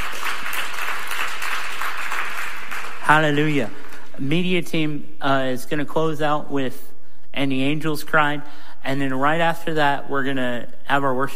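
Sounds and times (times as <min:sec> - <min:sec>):
audience clapping: 0:00.0 - 0:04.3
speech: 0:03.1 - 0:11.3.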